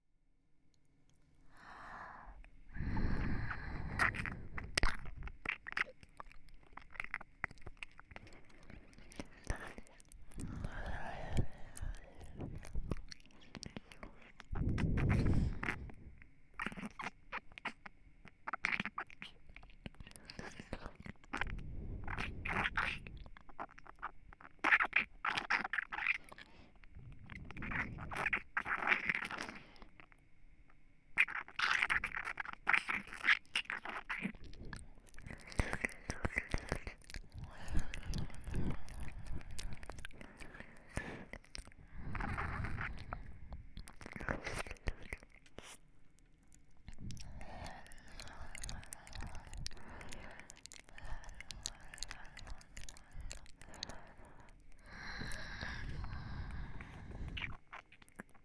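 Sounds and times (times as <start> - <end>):
ear licking on the right: 1.5 - 30.2, 31.2 - 58.4.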